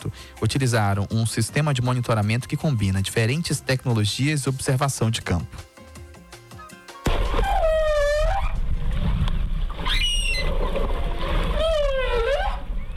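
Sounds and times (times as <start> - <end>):
speech: 0.0 - 5.8
humpback whale mother calling her calf underwater in Espírito Santo waters: 7.1 - 12.9.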